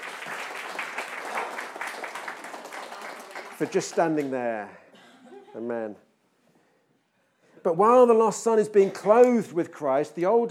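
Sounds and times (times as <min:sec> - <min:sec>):
church congregation clapping: 0:00.0 - 0:04.7
speech: 0:03.6 - 0:04.8, 0:05.5 - 0:06.1, 0:07.6 - 0:10.5.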